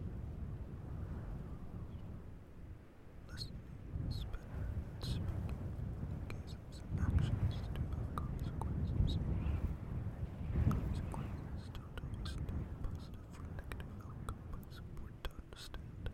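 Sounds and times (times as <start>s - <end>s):
wind: 0.0s - 16.1s
people whispering: 3.3s - 9.7s, 10.6s - 16.1s.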